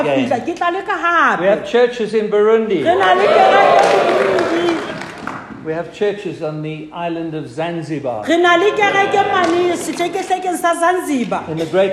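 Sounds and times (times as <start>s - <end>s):
speech: 0.0s - 4.8s, 5.6s - 11.9s
audience cheering: 2.9s - 5.4s
scattered applause: 3.2s - 5.5s.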